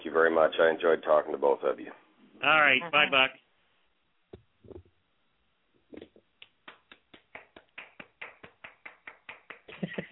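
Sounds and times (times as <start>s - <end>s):
speech: 0.2s - 3.4s
hand clapping applause: 6.0s - 10.0s.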